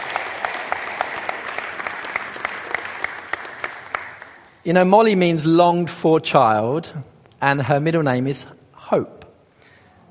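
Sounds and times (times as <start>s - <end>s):
audience clapping: 0.0s - 4.6s
speech: 4.6s - 9.2s.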